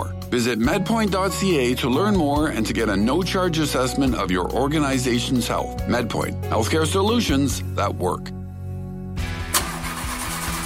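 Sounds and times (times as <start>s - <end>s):
speech: 0.0s - 8.4s
car engine in need of repair starting and idling roughly: 9.2s - 10.6s.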